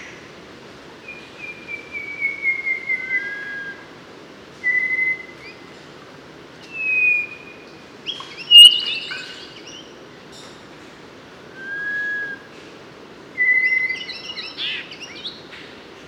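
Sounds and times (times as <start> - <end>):
Mangrove robin singing long whistled notes in Papua New Guinea: 1.0 - 3.9, 4.6 - 5.6, 6.6 - 9.9, 11.6 - 12.5, 13.4 - 15.4.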